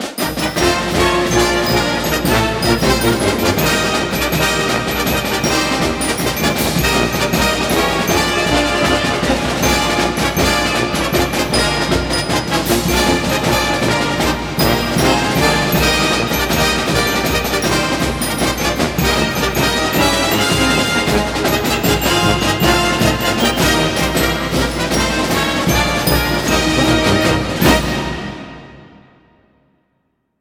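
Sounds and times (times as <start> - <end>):
broadcast fight song music: 0.0 - 28.9.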